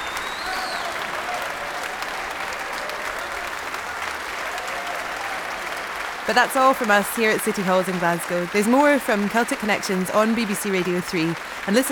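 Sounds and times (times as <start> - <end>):
people whooping: 0.0 - 8.0
large concert audience and orchestra applauding: 0.0 - 11.9
speech: 6.3 - 11.9.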